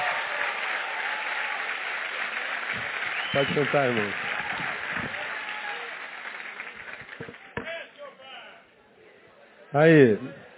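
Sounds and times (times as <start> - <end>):
audience applauding loudly: 0.0 - 7.6
speech: 3.3 - 4.7, 9.8 - 10.4.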